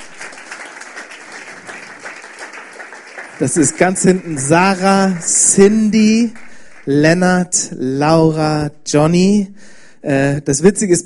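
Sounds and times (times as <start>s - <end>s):
audience applause: 0.0s - 6.9s
speech: 3.4s - 11.0s.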